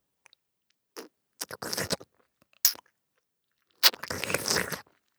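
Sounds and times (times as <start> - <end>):
android performing businesslike oral sex: 1.0 - 2.0, 3.8 - 4.8.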